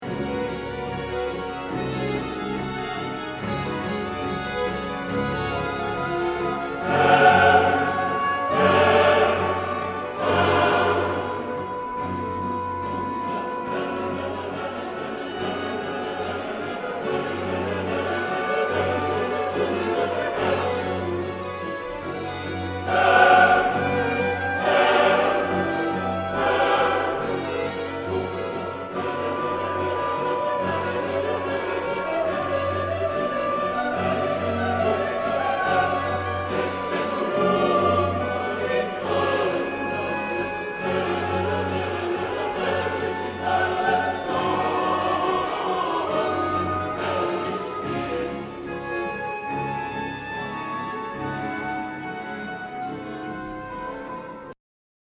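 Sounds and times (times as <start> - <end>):
chorus singing: 0.0 - 54.6.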